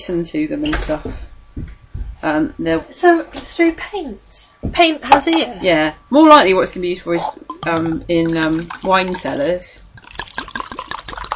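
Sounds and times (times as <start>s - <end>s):
speech: 0.0s - 9.8s
drink poured into a glass: 7.6s - 11.3s.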